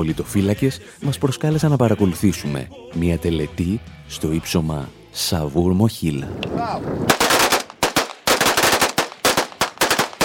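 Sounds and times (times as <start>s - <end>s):
speech: 0.0s - 7.3s
automatic gunfire from rebels in a salute at Saur-Mogila hill in Donetsk: 7.1s - 10.2s.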